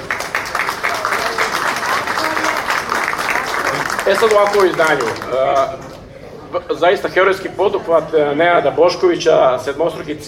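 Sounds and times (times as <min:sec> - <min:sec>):
audience applause honouring a musician and arranger: 0:00.0 - 0:05.8
speech: 0:04.1 - 0:10.2.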